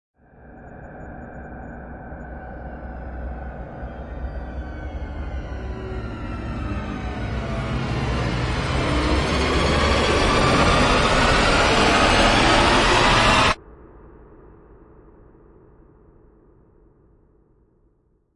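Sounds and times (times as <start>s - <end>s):
airlock rising: 0.3s - 13.6s.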